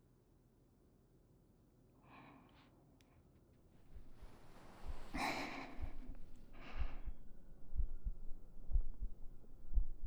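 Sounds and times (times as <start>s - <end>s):
breathy rushes of noise: 3.9s - 10.0s
heartbeat: 3.9s - 10.0s.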